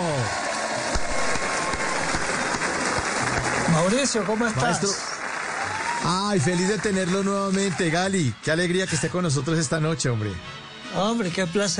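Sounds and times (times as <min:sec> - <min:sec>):
crowd clapping in dense continuous applause: 0:00.0 - 0:08.3
speech: 0:03.7 - 0:05.1, 0:06.0 - 0:11.7.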